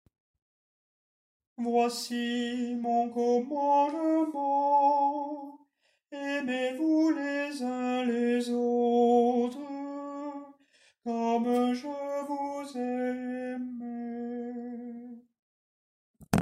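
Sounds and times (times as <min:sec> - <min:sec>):
tenor singing: 0:01.6 - 0:10.5, 0:11.1 - 0:15.2.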